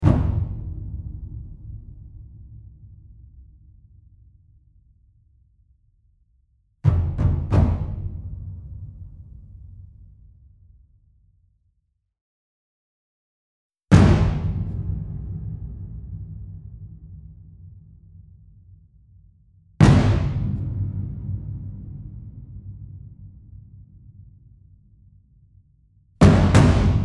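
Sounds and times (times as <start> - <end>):
huge drum slams: 0.0 - 3.5, 6.9 - 9.9, 13.9 - 18.5, 19.8 - 24.3, 26.2 - 27.0.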